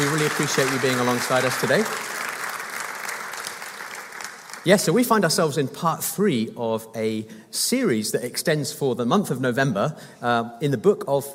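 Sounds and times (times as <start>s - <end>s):
crowd applauding: 0.0s - 5.3s
speech: 0.1s - 2.2s, 4.6s - 11.3s.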